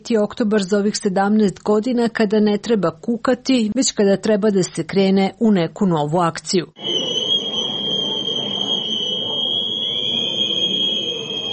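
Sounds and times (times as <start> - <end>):
speech: 0.0 - 7.0
crowd noise at a street rally: 6.8 - 11.5
whistles blown by protesters at a street rally: 6.8 - 11.5.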